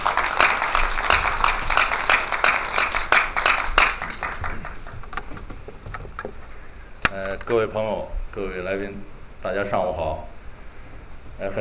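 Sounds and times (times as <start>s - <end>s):
audience applause: 0.0s - 6.3s
speech: 7.5s - 10.3s, 11.4s - 11.6s.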